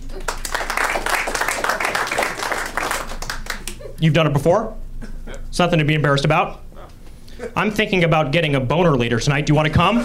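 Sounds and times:
audience applause: 0.2 - 3.8
speech: 4.0 - 6.6, 7.4 - 10.0.

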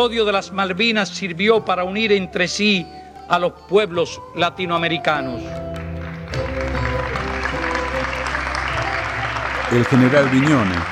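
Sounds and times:
speech: 0.0 - 5.7, 9.7 - 10.9
warm applause from a large crowd in an assembly hall: 5.7 - 10.9.

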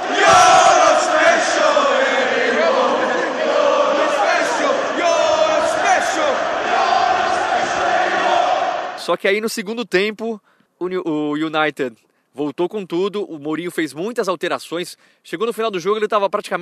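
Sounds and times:
large football crowd chanting in unison: 0.0 - 9.0
speech: 9.1 - 16.6.

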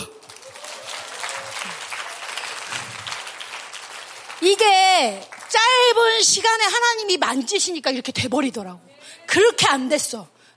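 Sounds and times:
audience applause: 0.0 - 6.0
speech: 4.4 - 10.4.

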